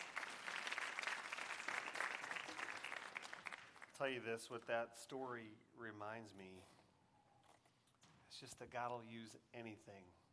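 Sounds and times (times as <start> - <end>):
audience clapping: 0.0 - 4.4
speech: 4.0 - 6.8, 8.4 - 10.2.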